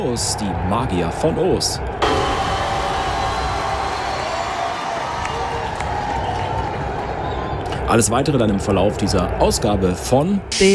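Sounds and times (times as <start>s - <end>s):
speech: 0.0s - 2.2s, 7.9s - 10.7s
large crowd applauding: 2.0s - 8.0s.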